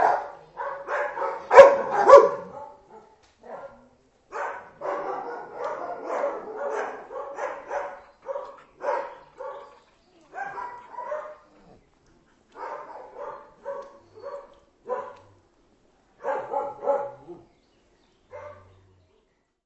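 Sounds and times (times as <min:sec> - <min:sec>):
dog barking: 0:00.0 - 0:09.8, 0:10.4 - 0:11.5, 0:12.5 - 0:15.3, 0:16.2 - 0:17.4, 0:18.3 - 0:18.7.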